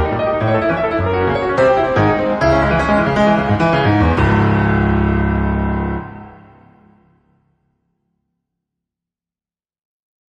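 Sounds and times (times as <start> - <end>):
piano playing: 0.0 - 7.4.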